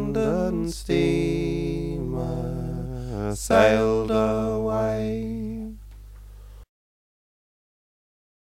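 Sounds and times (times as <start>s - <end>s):
melody sung with tenor harmony: 0.0s - 5.8s.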